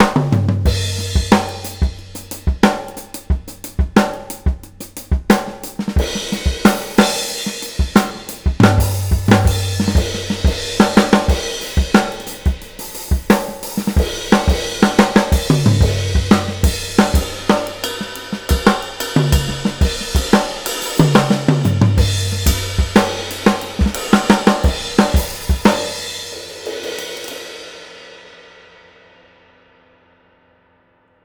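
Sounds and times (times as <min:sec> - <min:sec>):
jazzy nineties groove drum loop: 0:00.0 - 0:27.4.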